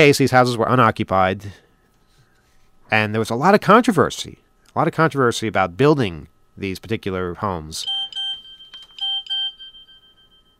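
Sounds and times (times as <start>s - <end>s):
speech: 0.0s - 1.6s, 2.9s - 8.0s
short bright electronic phone beeps: 7.8s - 10.5s
thin steady high tone: 7.8s - 10.5s
phone clicks: 7.9s - 9.4s.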